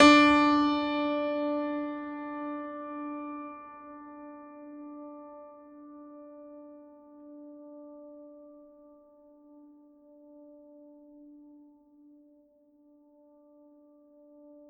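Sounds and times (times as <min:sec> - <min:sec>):
classical piano note D3: 0:00.0 - 0:08.0.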